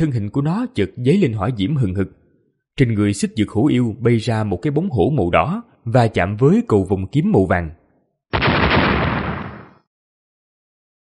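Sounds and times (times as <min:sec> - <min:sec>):
speech: 0:00.0 - 0:02.2, 0:02.8 - 0:07.8
rapid series of explosions: 0:08.3 - 0:09.9.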